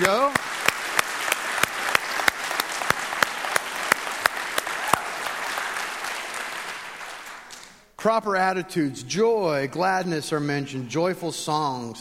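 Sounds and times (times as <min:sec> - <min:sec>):
speech: 0:00.0 - 0:00.6, 0:08.0 - 0:11.9
audience applauding: 0:00.0 - 0:07.8.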